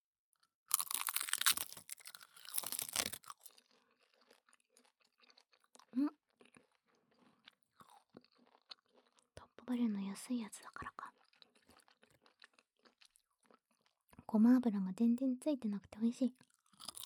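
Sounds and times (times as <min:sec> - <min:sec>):
chewing crunchy Korean seaweed sheets: 0:00.7 - 0:04.4, 0:16.8 - 0:17.0
speech: 0:09.7 - 0:11.0, 0:14.3 - 0:16.5.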